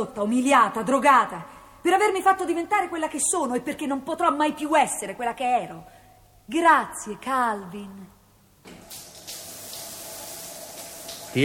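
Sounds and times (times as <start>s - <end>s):
speech: 0.0s - 5.9s, 6.5s - 8.2s
shower running as someone washes under it: 8.7s - 11.4s.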